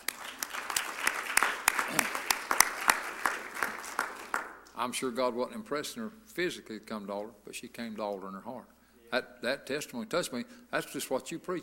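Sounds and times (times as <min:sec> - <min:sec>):
soft crowd noise: 0:00.0 - 0:04.7
audience clapping: 0:00.0 - 0:04.8
speech: 0:04.8 - 0:11.6.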